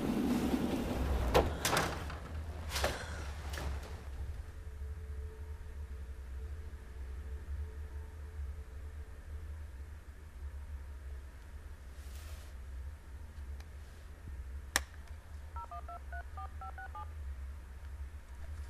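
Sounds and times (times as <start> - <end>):
steady low hum: 0.0 - 18.6
dual-pitched telephone keypad beeps as someone dials a call: 15.6 - 17.1.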